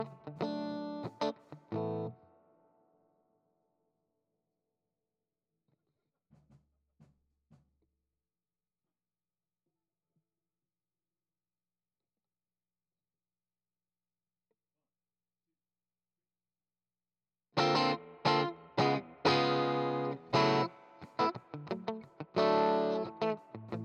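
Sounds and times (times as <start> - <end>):
guitar: 0.0 - 2.6, 17.6 - 23.8.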